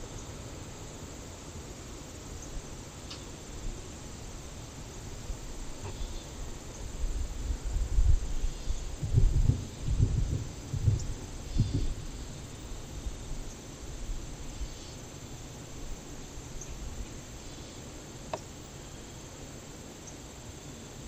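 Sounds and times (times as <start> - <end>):
anomalous environmental sounds: 0.0 - 21.0.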